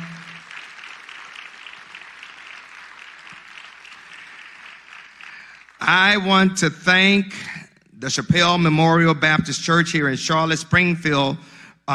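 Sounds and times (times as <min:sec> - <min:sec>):
audience applause: 0:00.0 - 0:06.2
speech: 0:05.9 - 0:11.9.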